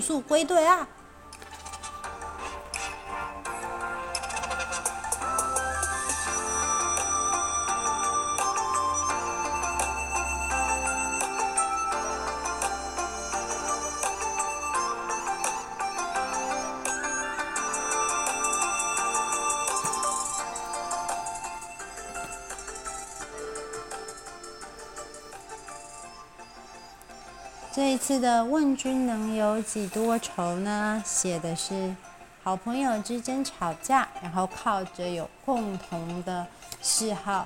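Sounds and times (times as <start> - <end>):
speech: 0.0 - 1.0, 28.1 - 37.4
telephone ringing with an electronic melody: 3.5 - 27.7.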